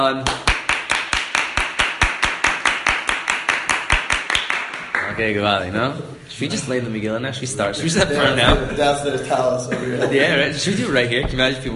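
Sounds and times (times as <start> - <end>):
speech: 0.0 - 0.5, 5.2 - 11.7
hands clapping: 0.2 - 5.2
laughter: 7.8 - 11.1.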